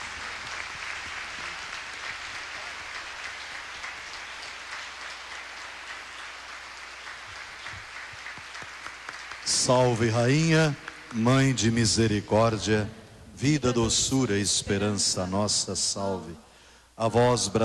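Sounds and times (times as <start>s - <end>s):
crowd applauding: 0.0s - 12.5s
speech: 9.5s - 16.4s, 17.0s - 17.6s.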